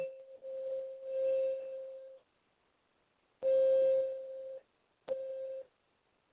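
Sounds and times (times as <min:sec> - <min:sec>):
small singing bowl tapped and played: 0:00.0 - 0:02.2, 0:03.4 - 0:05.7.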